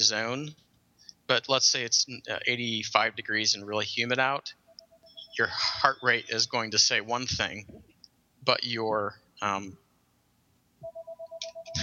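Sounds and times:
speech: 0.0s - 0.7s, 1.3s - 4.6s, 5.3s - 9.8s
phone ringing with an incoming call, short electronic beeps: 4.7s - 6.3s, 10.8s - 11.8s.

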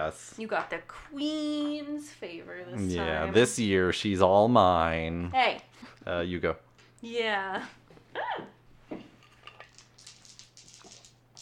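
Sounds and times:
speech: 0.1s - 8.5s
dice rattling on a hard tabletop: 9.4s - 11.3s.

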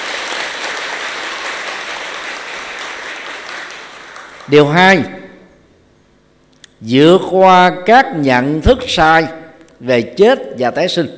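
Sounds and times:
audience applause: 0.0s - 4.5s
speech: 4.5s - 5.2s, 6.8s - 11.1s.

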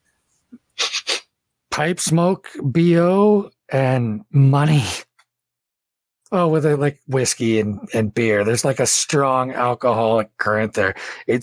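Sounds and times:
person imitating sniffing: 0.5s - 1.4s
speech: 1.8s - 5.0s, 6.3s - 11.4s.

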